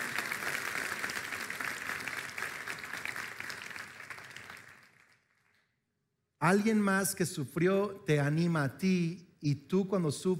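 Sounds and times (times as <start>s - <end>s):
crowd applause: 0.0s - 5.6s
speech: 6.4s - 10.3s.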